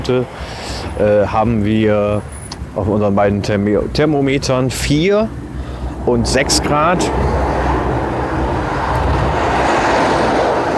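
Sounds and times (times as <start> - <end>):
speech: 0.0 - 5.4, 6.0 - 7.4
truck driving past: 5.3 - 10.7.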